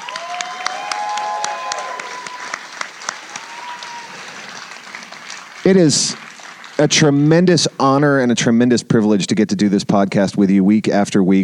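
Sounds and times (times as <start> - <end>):
crowd applause: 0.0 - 7.7
speech: 5.6 - 6.2, 6.8 - 11.4.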